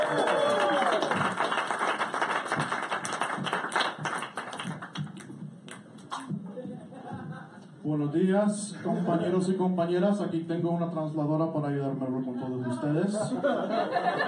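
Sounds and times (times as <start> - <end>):
cheering voices: 0.0 - 1.4
audience applause at a comedy roast: 0.0 - 5.3
laughter: 6.5 - 7.8, 8.8 - 9.4, 12.3 - 14.2
speech: 7.9 - 14.2.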